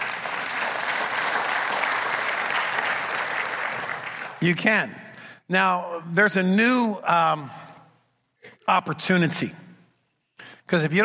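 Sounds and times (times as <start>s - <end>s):
crowd applauding: 0.0s - 4.5s
speech: 4.4s - 7.6s, 8.7s - 9.6s, 10.7s - 11.0s.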